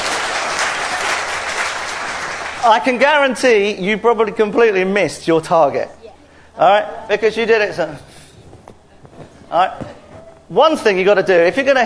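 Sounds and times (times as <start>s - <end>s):
audience applause during a target-aiming demonstration: 0.0s - 2.9s
speech: 2.6s - 6.0s, 6.6s - 8.1s, 9.5s - 11.8s.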